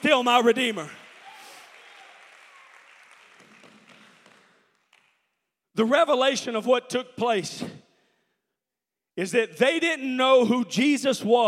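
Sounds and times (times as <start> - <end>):
audience clapping hands: 0.0 - 5.5
speech: 0.1 - 1.0, 5.8 - 7.8, 9.2 - 11.4.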